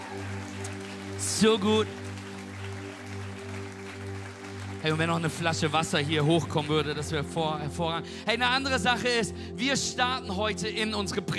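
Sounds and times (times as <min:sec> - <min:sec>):
crowd applause: 0:00.0 - 0:07.2
speech: 0:01.4 - 0:02.0, 0:04.8 - 0:11.3.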